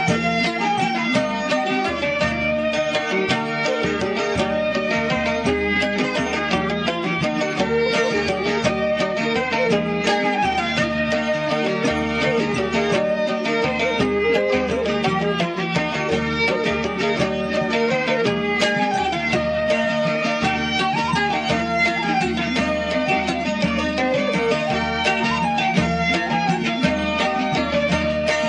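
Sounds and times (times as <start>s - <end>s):
mazurka music: 0.0s - 28.4s.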